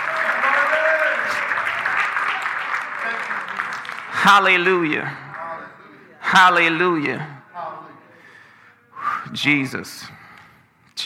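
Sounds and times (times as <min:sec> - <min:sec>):
audience cheering: 0:00.0 - 0:04.2
audience clapping: 0:00.0 - 0:05.8
speech: 0:04.3 - 0:05.2, 0:06.3 - 0:07.4, 0:09.3 - 0:10.2.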